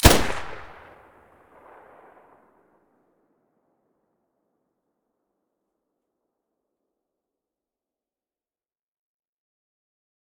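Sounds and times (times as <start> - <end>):
weapon muzzle blast: 0.0 - 1.0.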